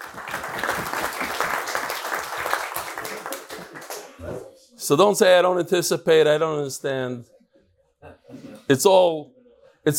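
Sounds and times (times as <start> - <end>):
crowd applause: 0.0 - 4.3
speech: 4.9 - 7.4, 8.7 - 9.9.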